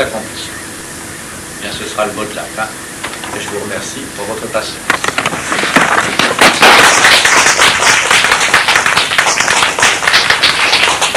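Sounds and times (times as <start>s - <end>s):
speech: 0.0s - 0.6s, 1.6s - 7.0s
audience applause: 5.5s - 11.1s.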